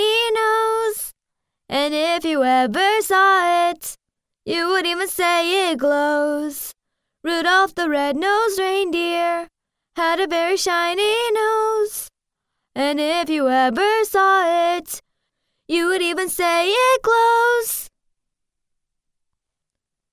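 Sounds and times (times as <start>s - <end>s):
foreign woman singing a children's song in American English: 0.0s - 1.1s, 1.7s - 12.1s, 12.8s - 15.0s, 15.7s - 17.9s.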